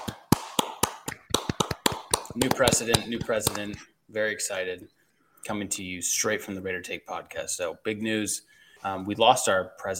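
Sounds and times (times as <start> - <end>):
clapping: 0.0 - 3.8
speech: 2.4 - 9.9.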